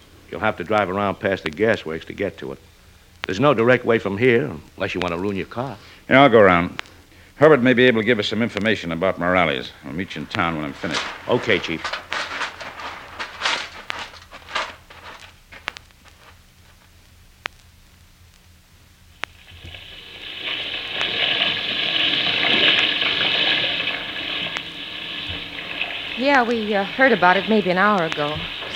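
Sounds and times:
speech: 0:00.3 - 0:12.0, 0:26.4 - 0:28.6
old washing machine running: 0:19.4 - 0:28.7.

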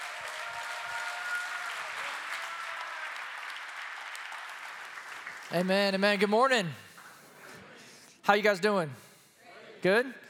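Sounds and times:
church congregation applauding to welcome a pastor: 0:00.0 - 0:07.3
speech: 0:05.5 - 0:06.8, 0:08.2 - 0:09.0, 0:09.8 - 0:10.2.

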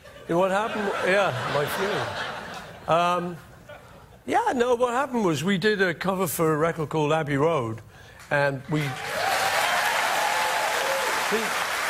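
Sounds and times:
laughter: 0:00.0 - 0:04.1
speech: 0:00.3 - 0:02.3, 0:02.9 - 0:03.5, 0:04.2 - 0:09.1, 0:11.3 - 0:11.6
large crowd applauding: 0:08.9 - 0:11.8.

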